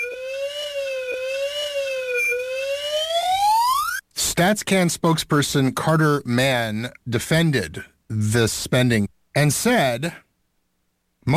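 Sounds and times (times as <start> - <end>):
slide whistle: 0.0 - 4.0
speech: 4.4 - 10.2.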